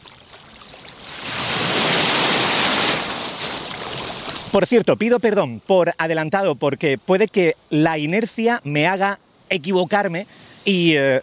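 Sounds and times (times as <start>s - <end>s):
waves breaking against a breakwater at La Rábita beach: 0.0s - 4.5s
speech: 4.5s - 11.2s.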